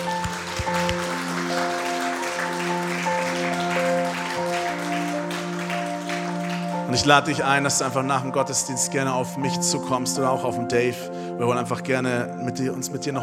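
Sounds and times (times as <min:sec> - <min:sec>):
applause: 0:00.0 - 0:07.8
speech: 0:06.9 - 0:13.2.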